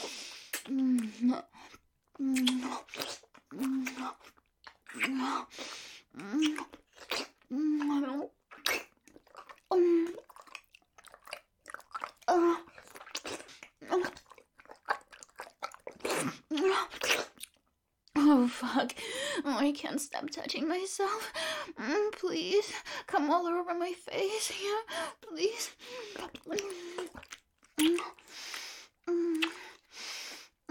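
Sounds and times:
wet licking and sucking mouth sounds: 0:00.0 - 0:17.6, 0:26.2 - 0:28.7, 0:29.3 - 0:29.9
speech: 0:00.7 - 0:08.8, 0:09.7 - 0:10.2, 0:18.6 - 0:28.2.

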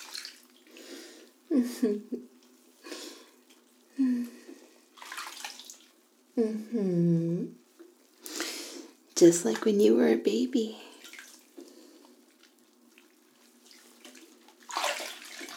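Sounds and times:
bathwater splashing as a mother washes her small boy: 0:00.0 - 0:00.7, 0:04.9 - 0:06.0, 0:10.9 - 0:11.6, 0:12.3 - 0:15.5
speech: 0:01.5 - 0:02.4, 0:06.4 - 0:07.6, 0:09.2 - 0:10.9.

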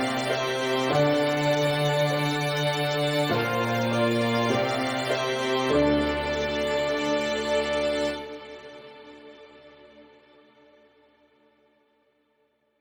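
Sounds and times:
instrumental pony music: 0:00.0 - 0:09.1.

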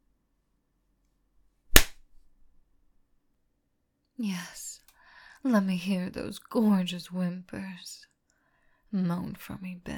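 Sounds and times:
sharp slap on skin: 0:01.7 - 0:02.0
speech: 0:04.2 - 0:04.6, 0:05.4 - 0:08.1, 0:08.9 - 0:09.9.

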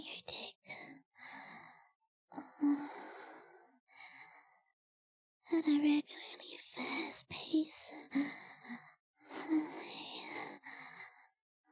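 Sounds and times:
breathy exhalations and sighs: 0:00.7 - 0:04.7, 0:08.0 - 0:11.6
speech: 0:05.6 - 0:06.3.

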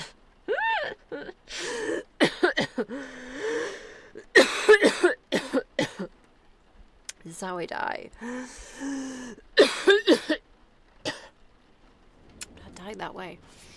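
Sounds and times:
speech: 0:01.1 - 0:02.1, 0:07.4 - 0:10.3, 0:12.9 - 0:13.7
person coughing after swallowing the wrong way: 0:01.9 - 0:02.9, 0:04.4 - 0:06.1, 0:09.6 - 0:10.4
strained wheezy gasps: 0:02.9 - 0:04.2, 0:08.2 - 0:09.4.

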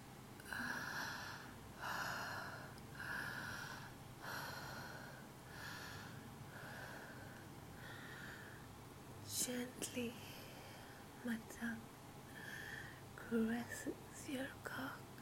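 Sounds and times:
heavy breathing: 0:00.4 - 0:08.7, 0:12.3 - 0:13.1
speech: 0:09.5 - 0:10.4, 0:11.2 - 0:11.9, 0:13.3 - 0:15.1.

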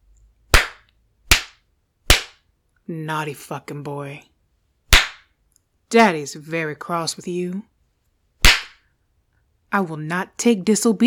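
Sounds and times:
open hand spanking bare buttocks: 0:00.5 - 0:02.4, 0:04.9 - 0:05.3, 0:08.4 - 0:08.8
speech: 0:02.9 - 0:04.3, 0:05.9 - 0:07.7, 0:09.7 - 0:11.0.

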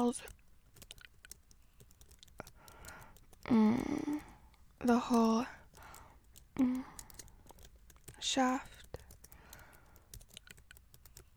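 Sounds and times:
speech: 0:00.0 - 0:00.4, 0:03.4 - 0:05.6, 0:06.6 - 0:06.9, 0:08.2 - 0:08.7
rapid typing on a computer keyboard: 0:00.0 - 0:11.3.

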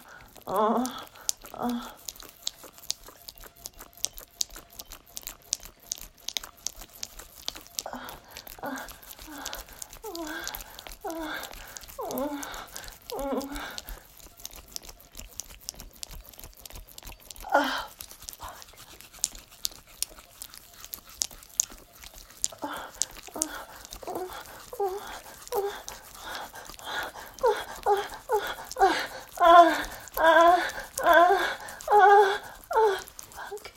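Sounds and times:
person whimpering: 0:00.0 - 0:02.1, 0:07.8 - 0:14.1, 0:17.4 - 0:18.6, 0:22.5 - 0:33.7
wet noises: 0:00.0 - 0:33.7.

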